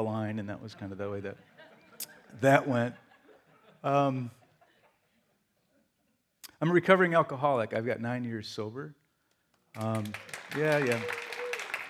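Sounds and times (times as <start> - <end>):
speech: 0.0 - 3.0, 3.8 - 4.4, 6.6 - 9.0, 9.8 - 11.2
audience clapping: 9.7 - 11.8
loud whoops and cheering voices: 10.8 - 11.8.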